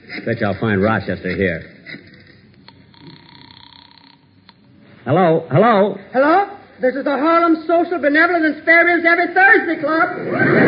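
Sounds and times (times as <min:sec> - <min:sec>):
steady hum: 0:00.0 - 0:10.6
speech: 0:00.2 - 0:01.8, 0:05.0 - 0:10.6
telephone bell ringing, sound effect in the Jack Benny radio show: 0:02.8 - 0:04.3.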